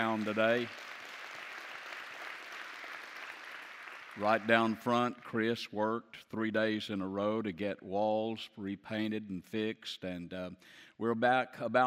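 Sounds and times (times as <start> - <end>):
speech: 0.0 - 0.9, 4.2 - 11.8
crowd clapping: 0.0 - 5.1.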